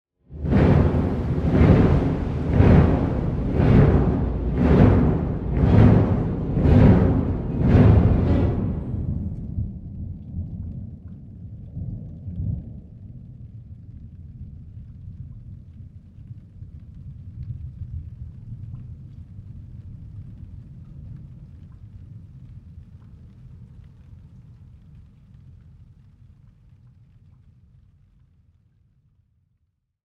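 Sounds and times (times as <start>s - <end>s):
timpani thunderclap roll: 0.2s - 10.2s.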